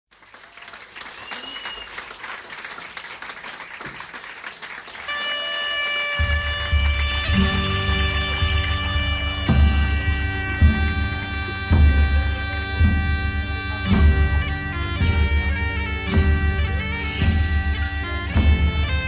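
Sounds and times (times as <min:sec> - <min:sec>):
live instrumental music: 0:04.9 - 0:19.0.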